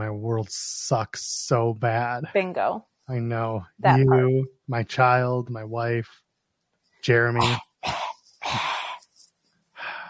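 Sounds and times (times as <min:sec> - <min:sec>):
speech: 0:00.0 - 0:06.2, 0:07.0 - 0:08.7
coughing: 0:07.3 - 0:08.8.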